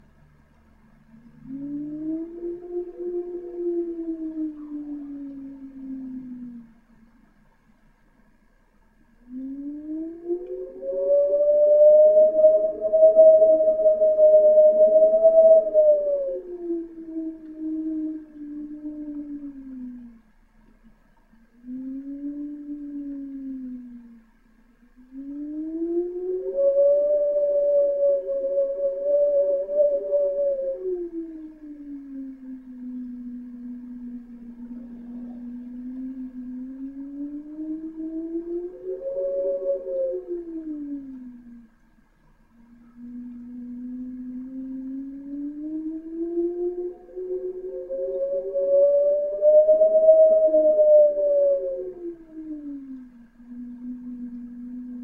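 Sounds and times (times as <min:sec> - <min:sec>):
wind: 0:00.0 - 0:55.0.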